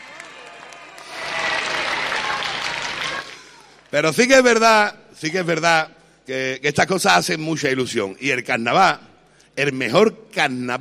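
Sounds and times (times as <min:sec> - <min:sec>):
audience applause: 0:00.0 - 0:03.9
speech: 0:03.9 - 0:10.7.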